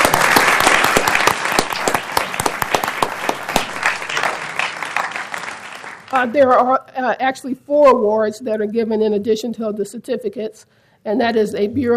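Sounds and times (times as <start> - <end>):
audience applause for judges: 0.0 - 6.2
speech: 6.2 - 11.9.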